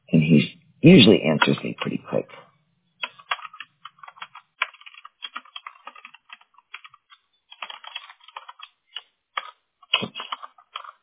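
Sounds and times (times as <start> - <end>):
speech: 0.2 - 2.5
rapid typing on a computer keyboard while messaging a supervisor: 3.0 - 11.0.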